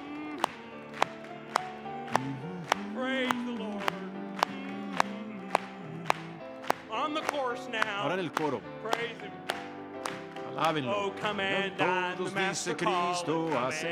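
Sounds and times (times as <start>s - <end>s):
audience clapping along in rhythm: 0.0s - 13.9s
speech: 8.0s - 9.5s, 10.6s - 13.9s.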